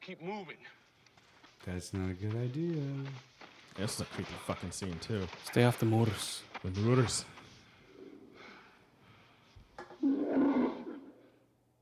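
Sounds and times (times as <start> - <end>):
speech: 0.0 - 0.8, 1.6 - 7.4
tiger roaring: 10.0 - 11.2.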